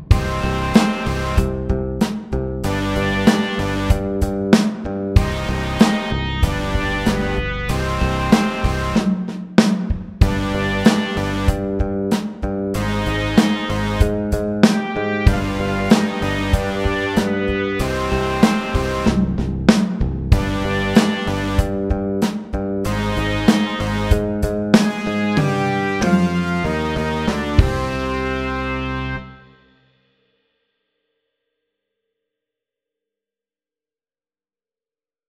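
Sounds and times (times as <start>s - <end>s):
slow electric rock music: 0.1s - 9.1s, 10.2s - 29.3s.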